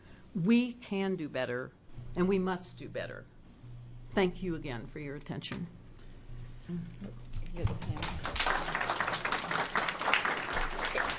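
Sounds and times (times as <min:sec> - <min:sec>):
speech: 0:00.4 - 0:03.3, 0:04.2 - 0:05.8, 0:06.7 - 0:08.3
crowd applause: 0:08.0 - 0:11.1.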